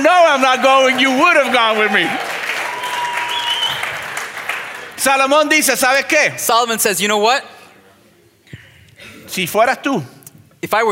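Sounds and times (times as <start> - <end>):
speech: 0.0 - 2.4, 5.0 - 7.6, 9.3 - 10.9
audience applause: 0.0 - 5.3.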